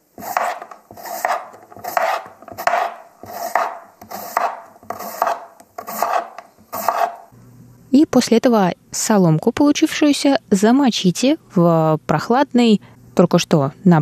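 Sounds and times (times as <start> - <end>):
knife slicing potatoes into thin strips: 0.0 - 7.3
speech: 7.9 - 14.0.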